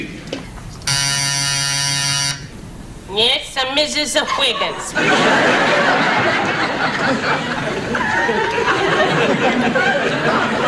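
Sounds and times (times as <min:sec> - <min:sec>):
electric buzzer: 0:00.8 - 0:02.6
speech: 0:03.2 - 0:10.6
laughter: 0:04.1 - 0:10.6.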